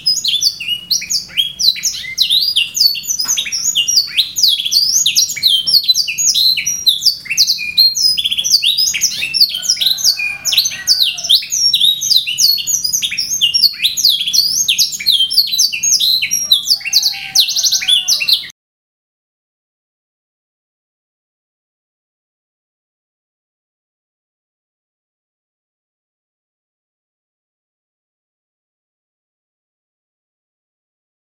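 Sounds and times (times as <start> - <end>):
canary singing: 0.0 - 18.5.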